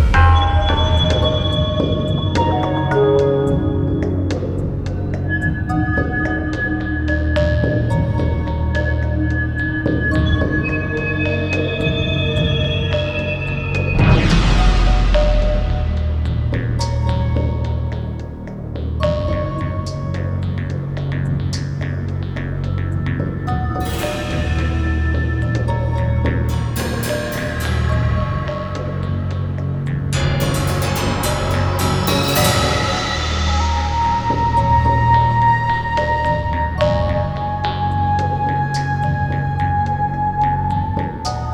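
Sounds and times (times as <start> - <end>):
bridge music: 0.0 - 41.5.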